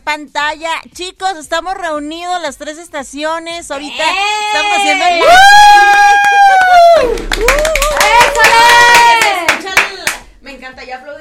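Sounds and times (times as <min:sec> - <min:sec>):
speech: 0:00.1 - 0:08.8
excited voices: 0:03.8 - 0:09.8
hand claps: 0:06.1 - 0:10.3.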